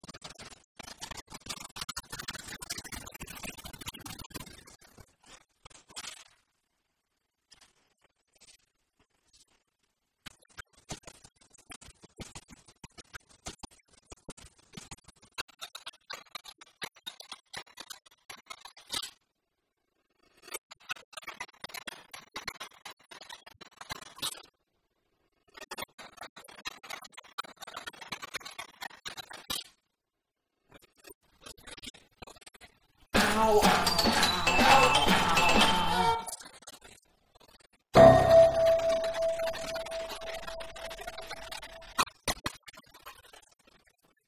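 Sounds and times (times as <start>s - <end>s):
music box: 33.2s - 36.4s, 38.0s - 41.8s.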